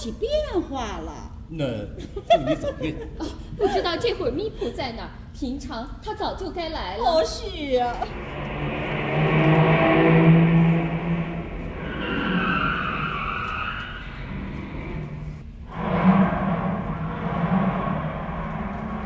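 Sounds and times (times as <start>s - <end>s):
speech: 0.0s - 8.5s
car engine rumbling as the vehicle drives off: 8.1s - 19.0s.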